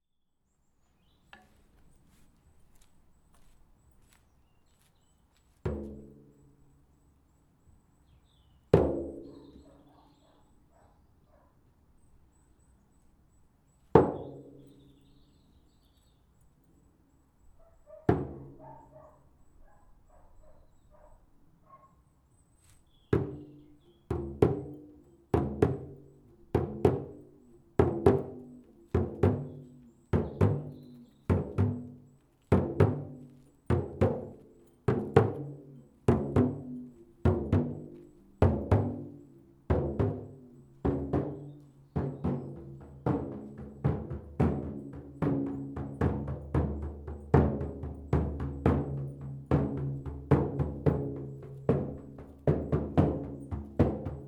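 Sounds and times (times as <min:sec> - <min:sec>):
drum circle: 0:05.6 - 0:06.1, 0:18.1 - 0:18.6, 0:23.2 - 0:23.5, 0:24.1 - 0:54.2.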